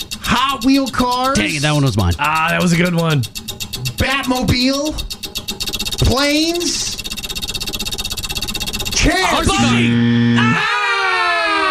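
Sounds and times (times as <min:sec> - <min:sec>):
game timer buzzer: 0:00.0 - 0:10.6
speech: 0:00.4 - 0:05.2, 0:06.0 - 0:07.1, 0:09.0 - 0:11.0.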